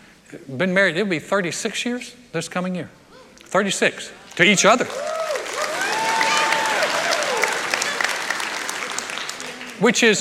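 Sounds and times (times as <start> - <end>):
speech: 0.3 - 5.2, 9.8 - 10.2
audience applause: 4.3 - 10.1.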